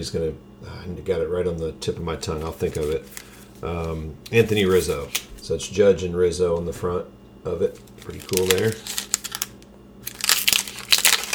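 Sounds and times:
speech: 0.0 - 9.0
plastic wrapper of a baseball trading card pack crinkling: 2.2 - 5.3, 7.7 - 11.3.

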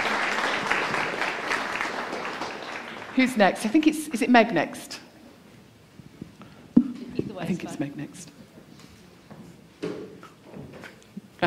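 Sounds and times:
round of applause: 0.0 - 3.3
speech: 3.2 - 5.0, 7.5 - 8.4.

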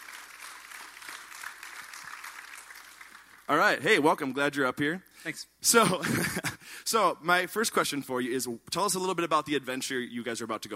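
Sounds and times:
audience applause: 0.0 - 3.6
speech: 3.5 - 10.7.

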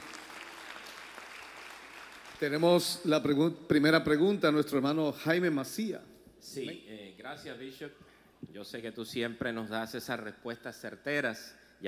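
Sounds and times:
audience applause: 0.0 - 2.4
speech: 2.4 - 11.8.

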